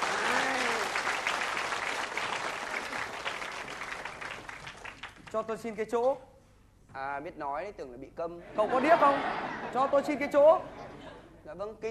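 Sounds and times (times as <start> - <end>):
audience applause: 0.0 - 5.3
speech: 5.4 - 6.3, 6.9 - 10.8, 11.5 - 11.8
laughter: 8.5 - 11.4.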